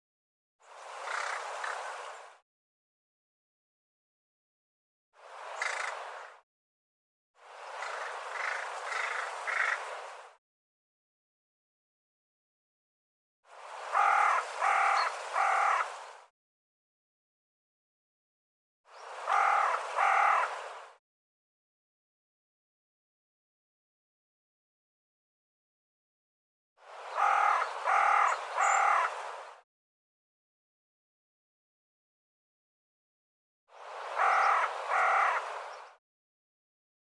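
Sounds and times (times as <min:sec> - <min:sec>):
bird giving loud harsh harmonic caws: 0:01.0 - 0:01.4, 0:05.6 - 0:06.0, 0:07.8 - 0:09.9, 0:13.8 - 0:16.0, 0:19.2 - 0:20.7, 0:27.0 - 0:29.3, 0:34.1 - 0:35.9.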